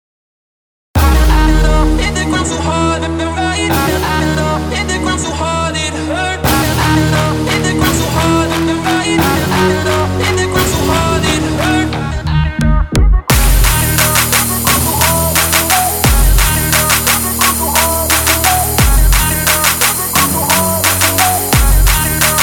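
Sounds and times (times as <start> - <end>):
hardstyle vocal: 1.0 - 22.4.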